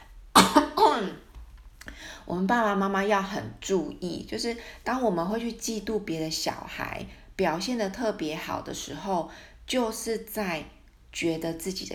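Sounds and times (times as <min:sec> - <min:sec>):
cough: 0:00.4 - 0:01.2
speech: 0:02.3 - 0:11.9.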